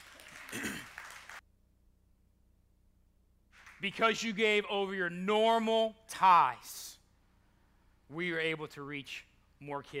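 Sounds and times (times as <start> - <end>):
audience applause: 0.0 - 1.4
speech: 0.5 - 0.8, 3.8 - 6.9, 8.1 - 9.9.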